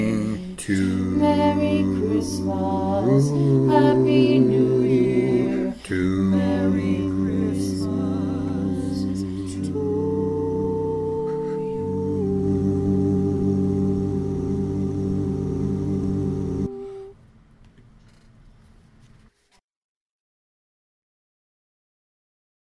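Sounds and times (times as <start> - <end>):
bass: 0.1 - 16.8.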